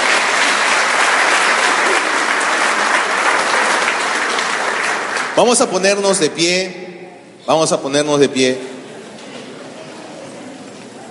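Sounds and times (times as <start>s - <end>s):
audience applause: 0.0s - 5.6s
speech: 5.4s - 6.9s, 7.5s - 8.7s.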